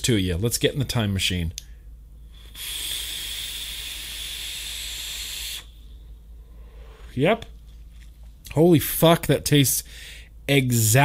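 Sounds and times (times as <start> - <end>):
speech: 0.0 - 1.6, 7.2 - 7.6, 8.5 - 11.0
faint low hum: 0.0 - 11.0
vaping from a dripping e-cigarette mod: 2.4 - 5.8.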